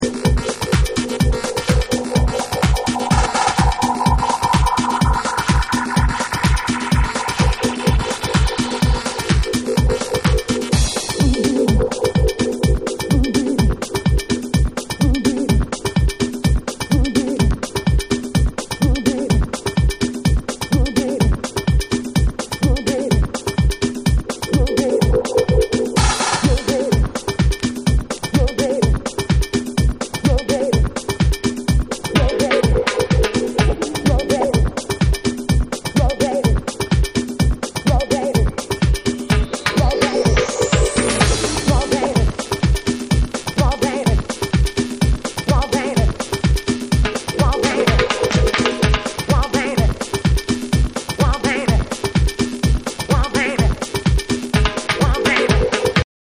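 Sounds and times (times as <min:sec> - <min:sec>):
dub music: 0:00.0 - 0:56.0.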